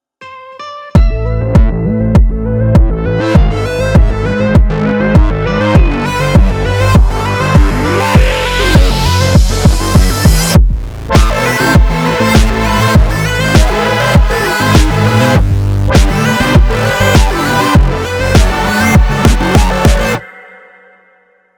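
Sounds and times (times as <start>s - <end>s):
boss battle music: 1.0s - 20.2s.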